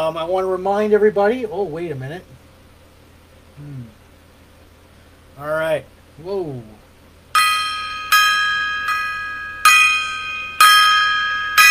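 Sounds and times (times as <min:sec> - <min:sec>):
speech: 0:00.1 - 0:02.4, 0:03.6 - 0:04.0, 0:05.4 - 0:06.8
gong being struck: 0:07.4 - 0:11.6.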